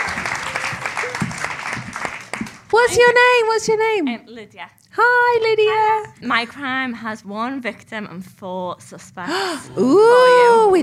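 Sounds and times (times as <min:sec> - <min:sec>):
audience applause at a live true-crime storytelling show: 0:00.0 - 0:02.8
speech: 0:02.7 - 0:10.8.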